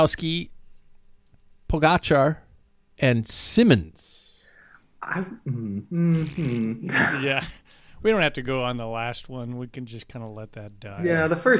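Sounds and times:
speech: 0.0s - 0.5s, 1.7s - 2.4s, 3.0s - 4.2s, 5.0s - 11.5s
fart sound effect: 5.6s - 6.8s.

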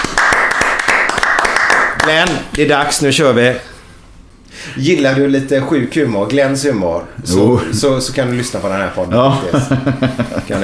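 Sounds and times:
hand clapping applause: 0.0s - 2.7s
speech: 2.1s - 3.7s, 4.6s - 10.6s
laughter: 9.2s - 10.6s.

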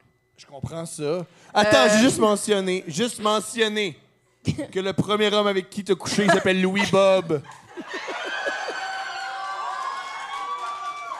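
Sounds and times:
speech: 0.4s - 8.1s
laughter: 6.1s - 9.4s
cheers and whoops: 8.0s - 11.1s
audience applause: 8.1s - 11.1s.

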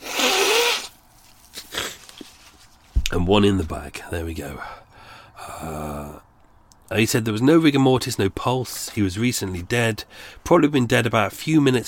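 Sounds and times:
person blowing nose: 0.0s - 2.3s
speech: 3.1s - 4.8s, 5.6s - 6.2s, 6.9s - 11.8s.

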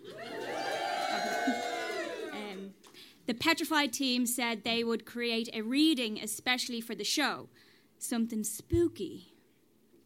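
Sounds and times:
crowd cheering and applauding: 0.0s - 2.7s
speech: 3.3s - 9.3s.

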